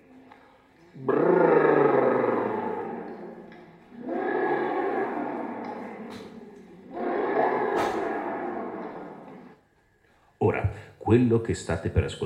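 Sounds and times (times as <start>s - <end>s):
stomach growling: 0.0s - 9.6s
speech: 1.0s - 1.4s, 11.1s - 12.2s.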